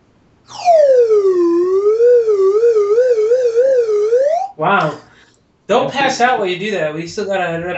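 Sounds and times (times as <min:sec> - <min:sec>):
metal slide whistle: 0:00.5 - 0:04.5
speech: 0:04.6 - 0:05.0, 0:05.8 - 0:07.7.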